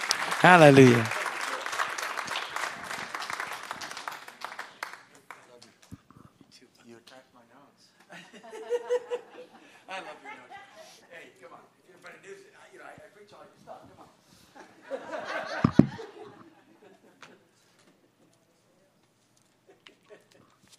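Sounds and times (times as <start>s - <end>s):
church congregation clapping at Harvest Bible Church: 0.0s - 6.0s
speech: 0.4s - 1.2s
laughter: 8.1s - 11.1s, 14.6s - 17.6s, 19.6s - 20.7s.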